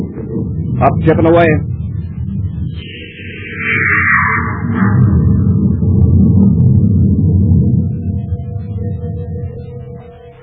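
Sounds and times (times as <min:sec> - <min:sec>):
spaceship rocket blasting off: 0:00.0 - 0:09.6
faint steady humming tone: 0:00.0 - 0:10.4
high descending whine: 0:00.0 - 0:10.4
speech: 0:00.4 - 0:01.7.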